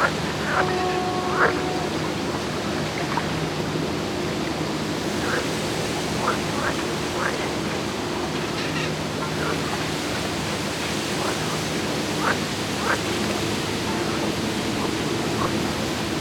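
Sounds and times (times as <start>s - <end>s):
frogs croaking at a dike in Gdańsk, Poland: 0.0s - 16.1s.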